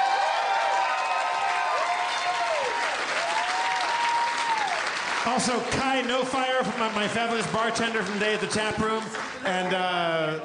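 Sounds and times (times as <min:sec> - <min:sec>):
crowd whooping and cheering: 0:00.0 - 0:05.5
crowd applause: 0:00.0 - 0:10.2
speech: 0:05.2 - 0:10.4.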